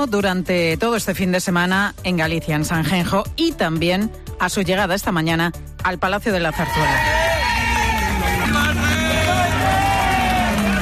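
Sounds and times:
speech: 0:00.0 - 0:07.2
crowd applauding and cheering: 0:06.5 - 0:10.8.

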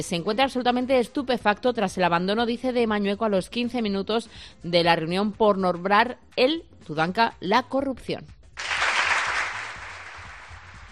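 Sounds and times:
speech: 0:00.0 - 0:08.4
crowd applause: 0:08.6 - 0:10.9.

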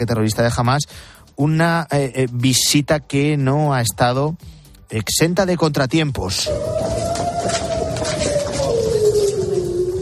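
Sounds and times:
speech: 0:00.0 - 0:07.6
steady noise: 0:00.0 - 0:10.0
air raid siren wailing: 0:06.4 - 0:10.0.

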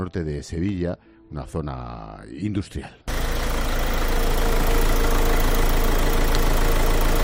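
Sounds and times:
speech: 0:00.0 - 0:03.0
car engine idling in car repair workshop: 0:03.1 - 0:07.2.

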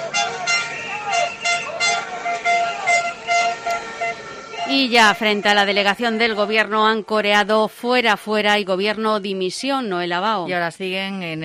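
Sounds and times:
crowd or traffic rumble: 0:00.0 - 0:07.0
truck horns honking at a truckers' protest: 0:00.0 - 0:07.0
speech: 0:04.7 - 0:11.4.

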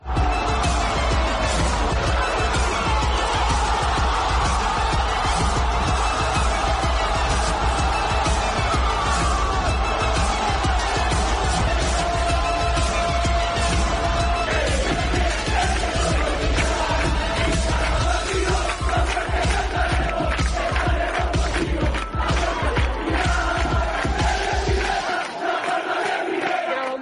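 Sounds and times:
football crowd chanting in unison: 0:00.0 - 0:27.0.

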